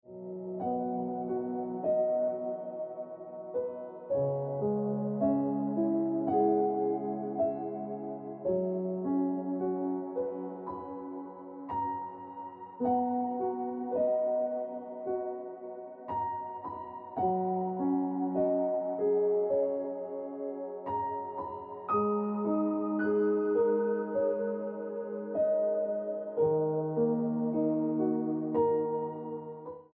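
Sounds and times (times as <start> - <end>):
piano music: 0.0 - 29.9.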